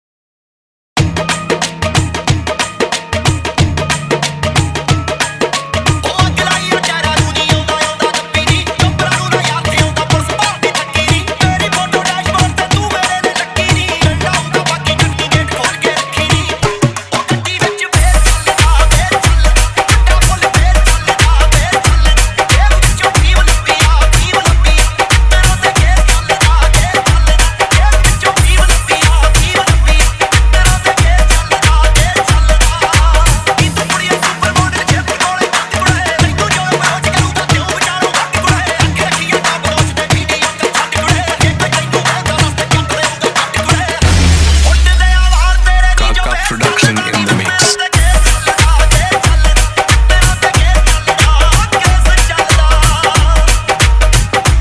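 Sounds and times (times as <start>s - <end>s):
dhol remix of a Punjabi song: 1.0s - 54.6s.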